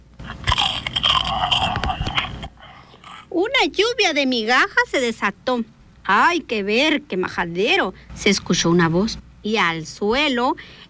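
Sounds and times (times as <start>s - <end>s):
monster chewing a cookie: 0.2s - 3.2s
speech: 3.6s - 10.8s.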